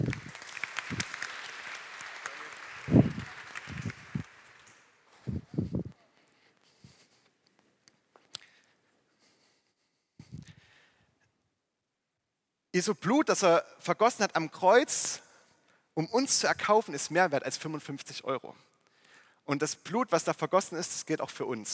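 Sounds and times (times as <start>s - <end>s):
audience applause: 0.0s - 5.1s
speech: 12.8s - 15.2s, 16.0s - 18.7s, 19.5s - 21.7s.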